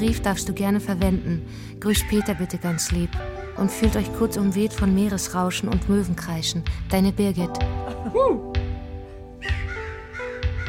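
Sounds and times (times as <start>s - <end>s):
speech: 0.0s - 8.6s
crow cawing: 9.4s - 10.6s.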